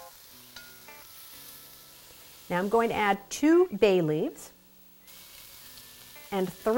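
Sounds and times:
lentils and vegetables sizzling in a pan: 0.0s - 6.7s
speech: 2.5s - 4.6s, 6.3s - 6.7s.

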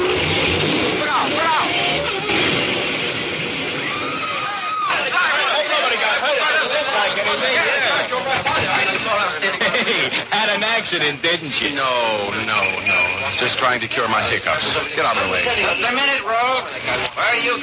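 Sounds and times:
taxi cab engine accelerating: 0.0s - 3.9s
busy voices and chatter: 0.0s - 17.6s
laughter: 4.8s - 10.9s
speech: 10.8s - 17.6s.

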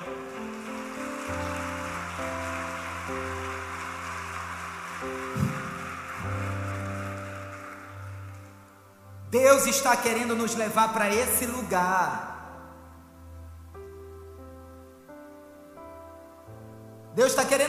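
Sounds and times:
crowd applauding: 0.0s - 8.9s
speech: 9.3s - 12.3s.

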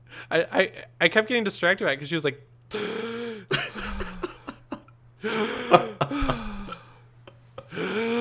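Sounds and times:
speech: 0.2s - 3.0s, 5.2s - 5.9s
imitated weird mouth breathing of sleeping woman: 3.0s - 4.8s, 6.1s - 7.0s
laughter: 3.5s - 8.0s.

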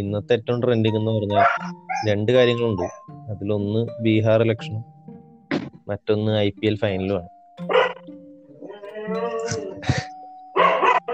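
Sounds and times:
speech: 0.0s - 4.9s, 5.9s - 7.8s
dog barking: 1.4s - 2.1s, 7.7s - 8.0s, 10.6s - 11.1s.

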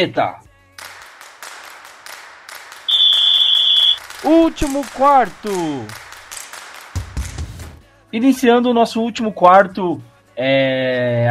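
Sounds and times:
speech: 0.0s - 0.4s, 4.2s - 6.0s, 8.1s - 11.2s
referee whistle: 2.9s - 5.4s.

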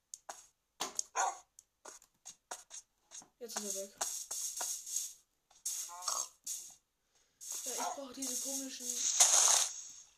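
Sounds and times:
dog barking: 1.1s - 1.5s, 7.8s - 8.0s
speech: 3.4s - 4.2s, 8.2s - 9.6s.

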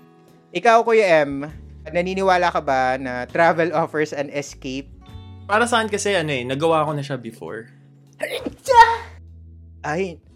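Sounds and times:
speech: 0.5s - 9.0s, 9.8s - 10.3s
sneeze: 8.2s - 9.2s.

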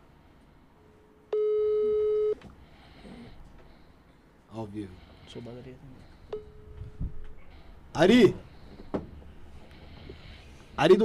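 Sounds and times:
telephone ringing tone on an unanswered call: 1.3s - 2.4s
speech: 4.6s - 6.1s, 8.0s - 8.5s, 10.8s - 11.0s.

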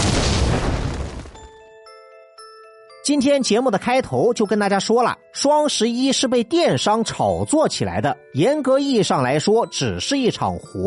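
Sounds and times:
explosion sound effect: 0.0s - 1.5s
speech: 3.1s - 10.8s.

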